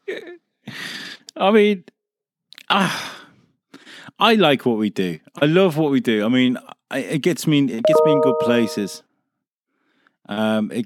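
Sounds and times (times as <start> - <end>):
speech: 1.4 - 2.0, 2.7 - 3.1, 4.2 - 9.1, 10.3 - 10.8
Messenger message notification chime: 7.9 - 9.0.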